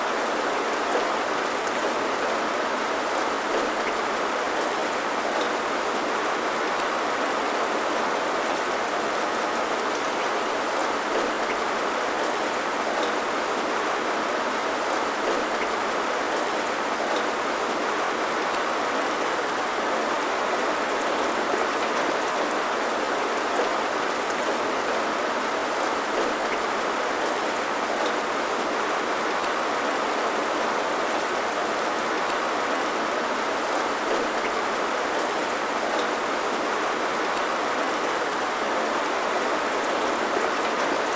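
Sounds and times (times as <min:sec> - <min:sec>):
rain: 0:00.0 - 0:41.1.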